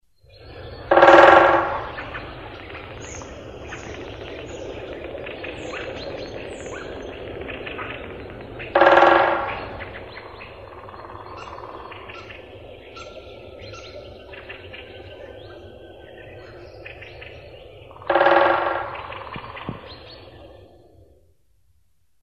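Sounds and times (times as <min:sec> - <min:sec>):
woodpecker: 0:00.4 - 0:20.6.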